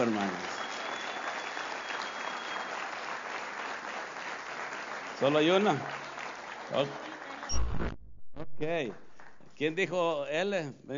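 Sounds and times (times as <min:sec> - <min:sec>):
speech: 0:00.0 - 0:00.6, 0:05.2 - 0:06.0, 0:06.7 - 0:08.0, 0:08.6 - 0:10.9
audience applause: 0:00.0 - 0:07.6.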